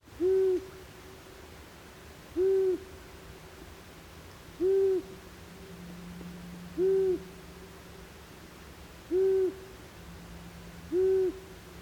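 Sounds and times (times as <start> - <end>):
Asio otus calling: 0.2 - 0.7, 2.4 - 2.9, 4.6 - 5.1, 6.8 - 7.3, 9.1 - 9.7, 10.9 - 11.4.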